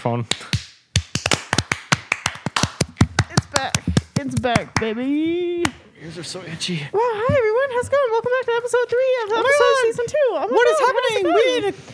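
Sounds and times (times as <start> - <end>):
speech: 0.0 - 0.6, 3.6 - 11.9
people clapping once for timing: 0.3 - 5.0.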